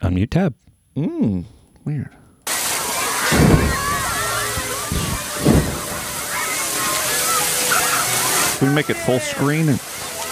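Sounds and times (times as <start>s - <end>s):
speech: 0.1s - 2.2s, 8.6s - 9.9s
hose spraying water: 2.5s - 10.2s.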